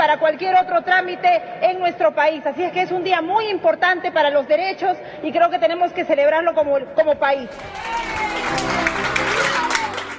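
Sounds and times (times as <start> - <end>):
speech: 0.1 - 8.8
applause in parliament chamber: 7.5 - 10.1.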